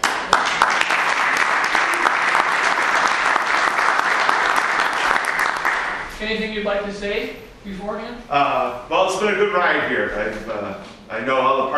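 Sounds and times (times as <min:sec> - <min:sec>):
audience applause: 0:00.0 - 0:06.1
speech: 0:06.2 - 0:11.7.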